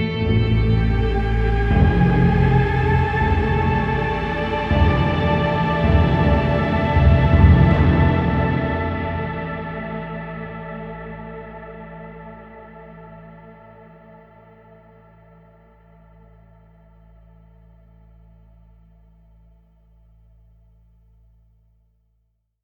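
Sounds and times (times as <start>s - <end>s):
happy success mood music: 0.2s - 12.2s.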